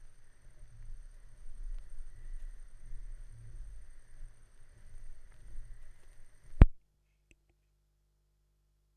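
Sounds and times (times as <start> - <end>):
vinyl record noise: 0.0 - 6.8.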